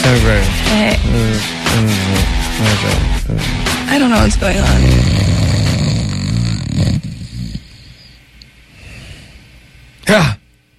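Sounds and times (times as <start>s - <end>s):
short sharp vocal bursts: 0.0s - 3.7s
voice imitating a snore: 0.9s - 8.1s
speech: 2.6s - 5.3s, 10.1s - 10.4s.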